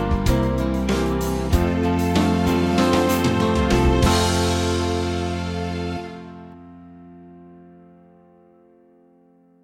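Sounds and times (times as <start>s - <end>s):
band playing: 0.0s - 6.6s.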